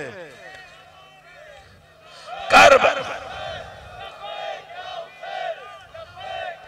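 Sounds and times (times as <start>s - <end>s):
crowd chanting slogans: 0.8s - 6.6s.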